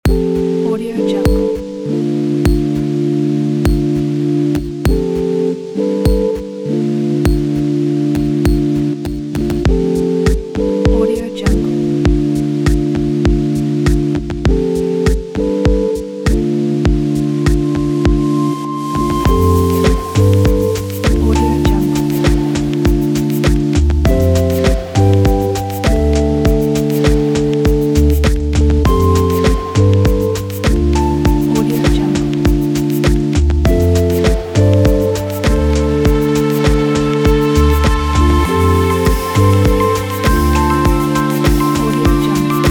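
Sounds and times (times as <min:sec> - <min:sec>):
lo-fi chillout music: 0:00.0 - 0:42.6.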